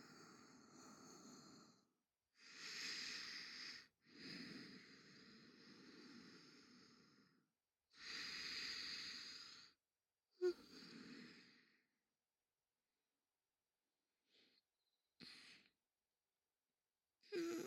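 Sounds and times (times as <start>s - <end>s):
sleeping breath: 0.0s - 7.4s, 8.0s - 9.8s, 10.4s - 11.8s.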